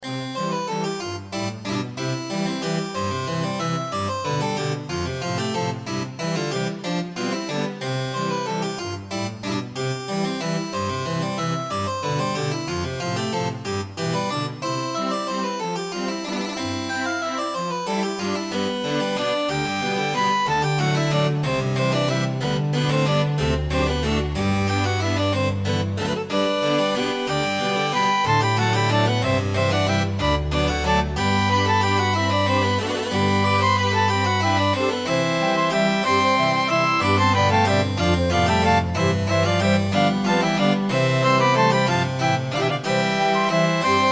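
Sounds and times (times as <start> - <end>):
waltz music: 0.0 - 44.1.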